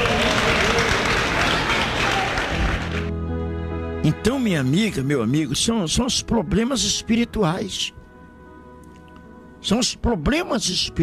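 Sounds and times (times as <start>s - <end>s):
audience clapping: 0.0s - 3.2s
speech: 4.0s - 8.0s, 9.6s - 11.0s.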